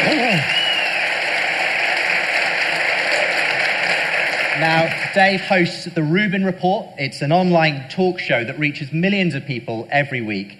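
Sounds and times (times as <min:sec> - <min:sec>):
audience applause: 0:00.0 - 0:06.0
speech: 0:04.6 - 0:10.5.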